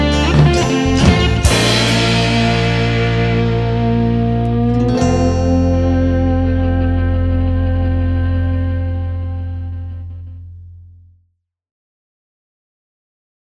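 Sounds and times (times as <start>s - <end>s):
slide guitar solo: 0.0s - 10.3s.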